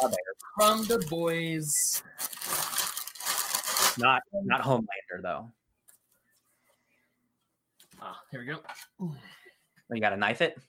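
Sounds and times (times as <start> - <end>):
speech: 0.0 - 2.4, 4.0 - 5.6, 8.0 - 10.6
paper wrapping on a gift package tearing and crumpling: 0.0 - 4.0.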